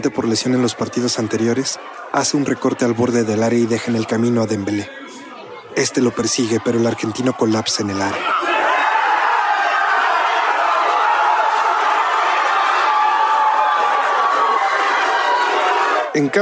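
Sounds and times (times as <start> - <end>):
speech: 0.0 - 5.1, 5.8 - 8.5, 16.2 - 16.4
bar crowd noise: 0.0 - 16.4.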